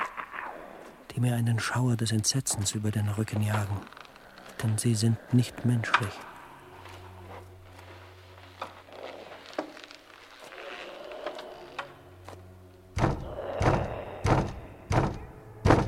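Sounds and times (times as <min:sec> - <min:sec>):
speech: 0:01.2 - 0:04.0, 0:04.6 - 0:06.3
polite knocking on a door: 0:13.0 - 0:15.8.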